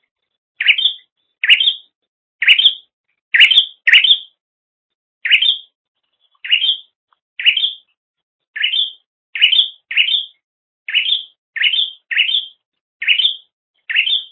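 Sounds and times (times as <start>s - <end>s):
bird chirping: 0.6s - 4.4s, 5.2s - 8.0s, 8.6s - 14.2s.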